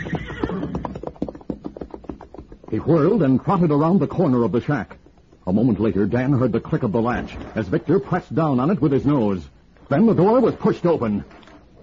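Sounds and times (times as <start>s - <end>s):
horse whinnying: 0.0s - 1.2s
speech: 2.7s - 11.4s.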